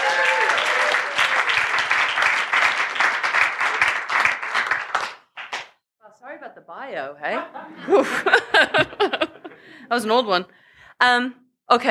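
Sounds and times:
audience applause: 0.0s - 5.7s
speech: 6.9s - 8.9s, 9.9s - 11.8s
laughter: 7.3s - 9.8s.

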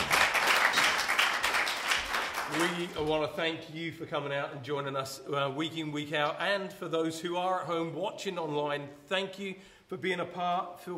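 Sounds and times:
audience clapping: 0.0s - 3.3s
speech: 2.5s - 10.9s.

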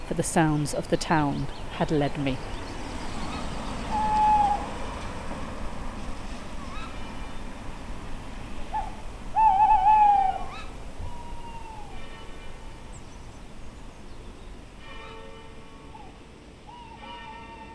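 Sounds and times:
low rumble: 0.0s - 16.4s
speech: 0.1s - 2.6s
owls hooting at night: 3.3s - 4.8s, 6.6s - 7.4s, 8.6s - 13.8s, 15.9s - 17.7s.

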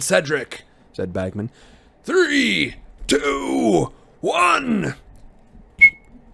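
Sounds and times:
speech: 0.0s - 5.0s
short whistle blast: 5.8s - 6.0s.

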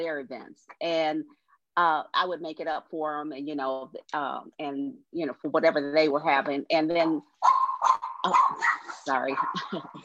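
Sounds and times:
speech: 0.0s - 10.0s
dog barking on the set of a live talk show: 7.4s - 9.7s.

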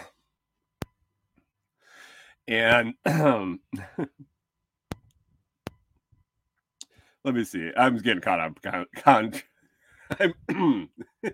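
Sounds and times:
speech: 2.5s - 4.3s, 7.2s - 9.5s, 10.1s - 11.3s
person clearing throat and coughing with something stuck in the throat: 3.0s - 4.1s, 10.1s - 11.3s.

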